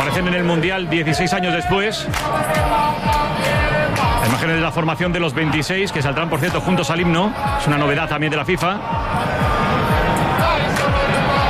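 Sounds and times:
stadium crowd applauding at the Azteca: 0.0 - 4.7, 10.2 - 11.4
stadium crowd booing at the Azteca: 0.0 - 11.4
speech: 0.2 - 9.5.

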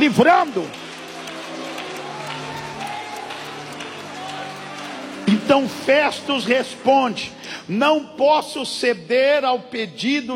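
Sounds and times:
speech: 0.0 - 0.8, 5.3 - 10.3
audience clapping and cheering: 0.0 - 7.4.

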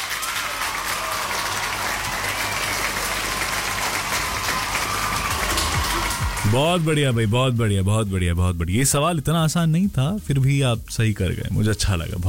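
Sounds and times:
applause: 0.0 - 7.1
speech: 6.5 - 12.2.

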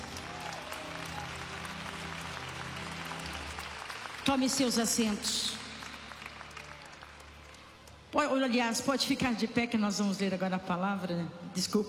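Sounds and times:
audience clapping hands: 0.0 - 8.2
speech: 4.2 - 5.6, 8.2 - 11.8.

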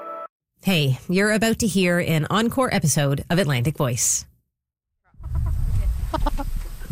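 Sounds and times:
speech: 0.7 - 4.3, 6.1 - 6.5
chickens clucking: 5.2 - 6.9.

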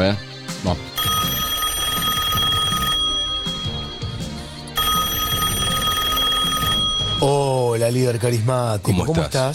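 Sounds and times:
speech: 0.0 - 1.1, 7.2 - 9.5
telephone ringing tone of outgoing call: 1.0 - 7.7.

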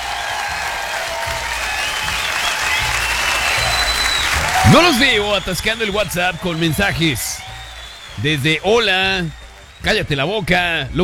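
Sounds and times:
applause: 0.0 - 11.0
speech: 4.7 - 7.5, 8.2 - 11.0.

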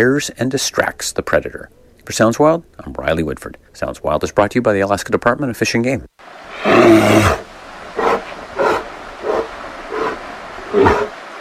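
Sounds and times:
speech: 0.0 - 7.5
grizzly bear roaring in Alaska: 6.5 - 11.2.

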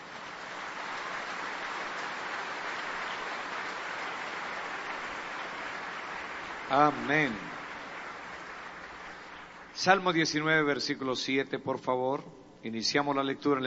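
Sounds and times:
audience applauding: 0.0 - 9.8
speech: 6.7 - 7.5, 9.8 - 13.6.

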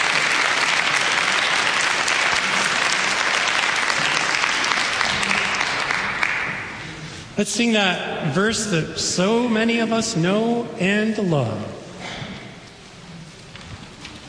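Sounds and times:
applause: 0.0 - 7.1
speech: 7.4 - 11.8.

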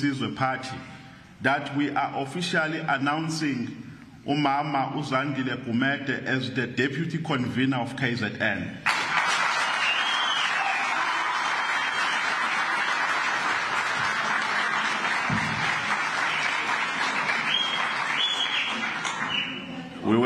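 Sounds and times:
speech: 0.0 - 8.9
crowd applauding the new Umkhonto weSizwe party deputy convener for KwaZulu-Natal: 8.9 - 19.9.

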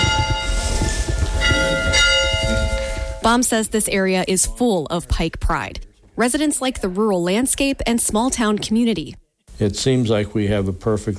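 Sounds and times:
school bell ringing: 0.0 - 3.4
speech: 3.3 - 11.1.

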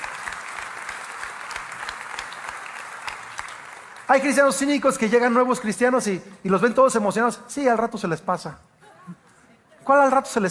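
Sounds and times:
church audience applause: 0.0 - 4.6
speech: 4.1 - 8.7, 9.9 - 10.5.

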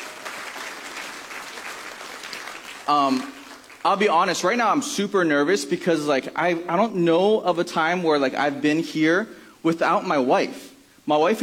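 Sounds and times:
audience applause: 0.0 - 3.9
speech: 2.9 - 11.4.

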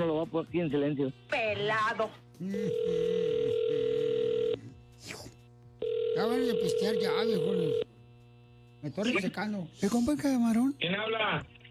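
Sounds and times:
speech: 0.0 - 3.2, 6.2 - 7.9, 8.8 - 11.6
telephone dial tone: 2.7 - 4.6, 5.8 - 7.8.

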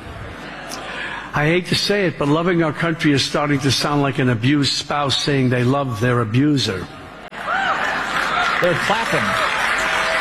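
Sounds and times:
speech: 1.4 - 7.0, 8.6 - 9.6
audience clapping: 7.5 - 10.1.

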